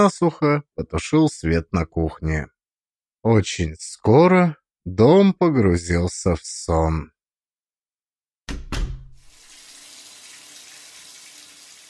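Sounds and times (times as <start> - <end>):
speech: 0.0 - 2.5, 3.2 - 7.2, 8.5 - 8.7
water running in a bathroom as someone washes: 9.2 - 11.8.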